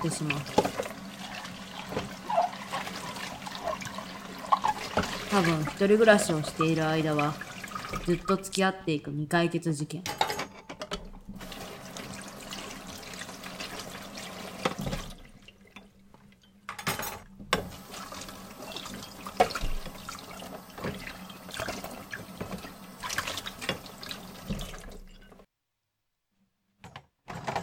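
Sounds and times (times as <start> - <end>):
speech: 0.0 - 0.7, 5.3 - 10.2
tap water running over dishes being washed: 0.0 - 8.8, 10.9 - 16.3, 17.4 - 25.5
crockery clinking and knocking: 10.0 - 11.2.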